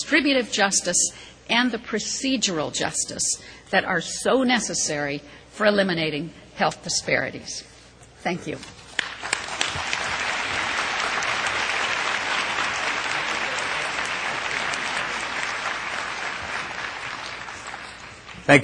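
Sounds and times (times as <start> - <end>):
speech: 0.1 - 8.8, 18.5 - 18.6
audience applause: 9.0 - 18.6.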